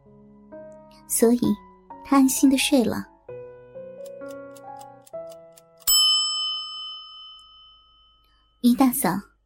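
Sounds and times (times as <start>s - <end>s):
speech: 1.1s - 3.1s, 8.8s - 9.3s
alarm clock steady ticking: 4.0s - 6.0s
alarm clock loud bright bell strike: 5.8s - 8.6s
alarm clock soft stepped chime tones: 5.8s - 8.6s.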